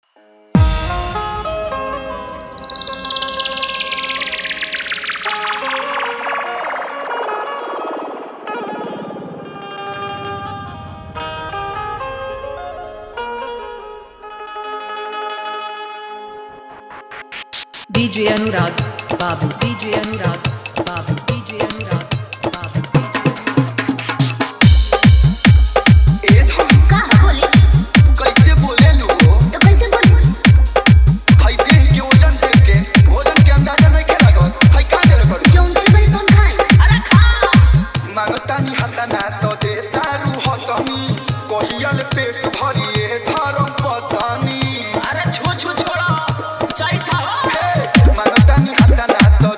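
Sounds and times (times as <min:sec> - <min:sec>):
Bhojpuri dholak dance mix: 0:00.6 - 0:07.1, 0:16.7 - 0:49.5.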